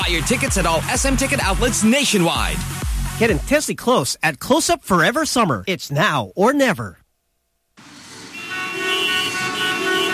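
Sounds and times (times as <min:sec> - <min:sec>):
speech: 0:00.1 - 0:07.0
traffic noise: 0:07.8 - 0:10.1
car horns honking in traffic: 0:08.0 - 0:10.1.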